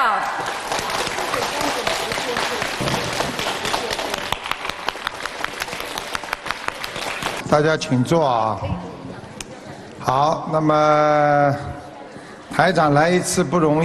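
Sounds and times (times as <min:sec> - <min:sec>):
large audience applause: 0:00.0 - 0:07.4
speech: 0:07.5 - 0:08.9, 0:10.0 - 0:11.7, 0:12.6 - 0:13.8.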